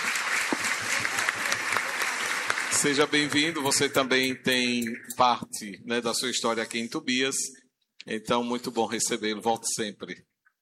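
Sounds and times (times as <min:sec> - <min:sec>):
church congregation applauding a seminarian: 0:00.0 - 0:03.6
speech: 0:02.8 - 0:10.3.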